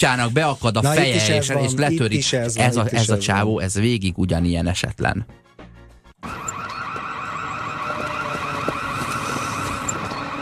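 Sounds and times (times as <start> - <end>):
speech: 0.0 - 5.4
shop anti-theft alarm going off: 6.2 - 10.4.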